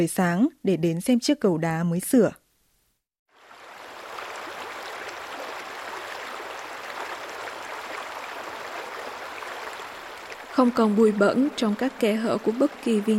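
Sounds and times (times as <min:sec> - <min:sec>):
speech: 0:00.0 - 0:02.4, 0:10.6 - 0:13.1
clear stream water babbling beside a repaired stone bridge: 0:03.3 - 0:13.1.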